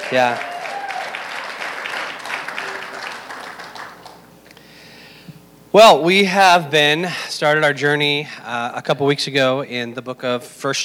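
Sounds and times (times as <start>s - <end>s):
audience clapping: 0.0s - 4.3s
speech: 0.1s - 0.5s, 5.7s - 10.8s.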